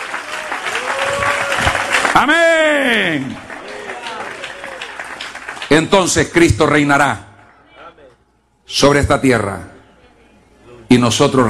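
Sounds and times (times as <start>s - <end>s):
audience applause: 0.0s - 6.3s
speech: 2.2s - 3.5s, 5.8s - 7.3s, 8.7s - 9.7s, 10.9s - 11.4s.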